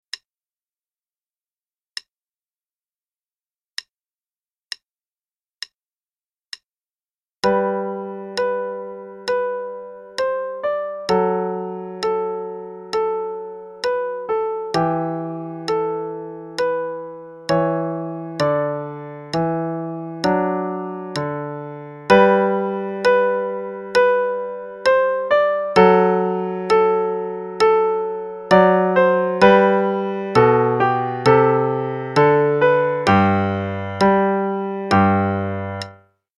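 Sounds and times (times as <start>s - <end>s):
play-along march music: 7.4s - 35.9s.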